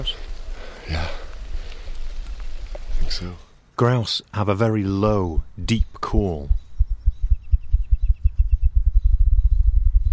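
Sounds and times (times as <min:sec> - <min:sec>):
speech: 0:03.2 - 0:06.6
low hum from visitor center: 0:05.2 - 0:10.1.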